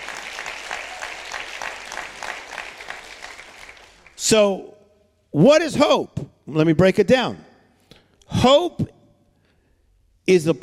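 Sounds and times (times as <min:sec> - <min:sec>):
audience clapping hands: 0:00.0 - 0:04.3
speech: 0:04.3 - 0:04.7, 0:05.3 - 0:07.4, 0:08.4 - 0:08.9, 0:10.3 - 0:10.6.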